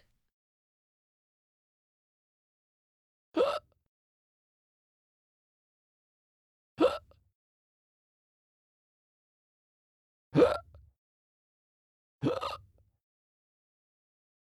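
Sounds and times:
girl hiccuping: 3.4s - 3.6s, 12.2s - 12.7s.

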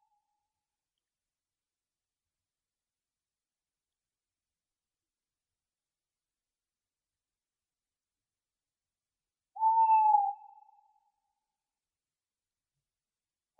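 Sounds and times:
tawny owl calling: 9.6s - 11.0s.

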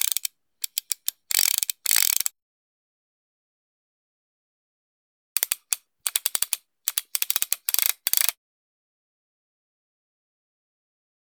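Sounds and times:
cartridges being inserted: 0.0s - 2.3s, 5.4s - 8.3s.

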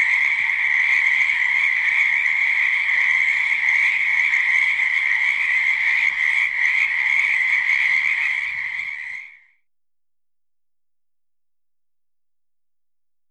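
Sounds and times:
frog chorus: 0.0s - 9.6s.

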